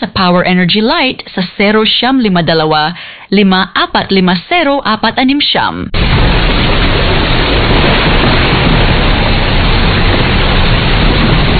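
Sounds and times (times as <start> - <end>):
speech: 0.0 - 7.3
heavy rain: 5.9 - 11.5
thunder: 5.9 - 11.5.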